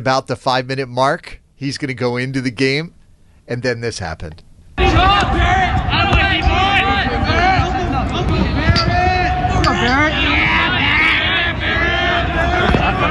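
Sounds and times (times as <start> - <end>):
speech: 0.0 - 6.2
kids' team cheering: 4.8 - 13.0.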